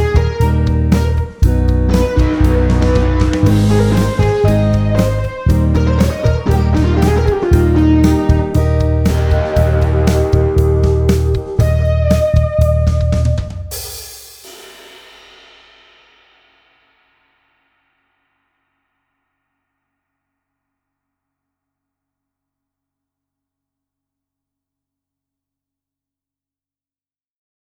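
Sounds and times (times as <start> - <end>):
guitar test: 0.0 - 13.7.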